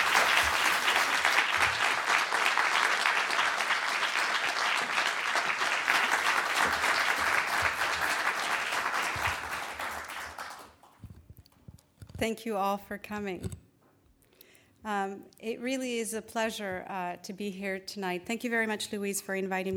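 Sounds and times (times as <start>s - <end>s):
audience applause at the Los Angeles Public Library welcoming two authors: 0.0s - 10.9s
speech: 12.2s - 13.6s, 14.8s - 19.7s.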